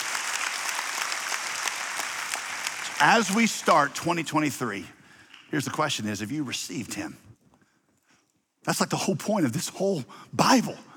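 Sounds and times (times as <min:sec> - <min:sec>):
audience clapping: 0:00.0 - 0:05.5
speech: 0:03.0 - 0:07.3, 0:08.7 - 0:10.9.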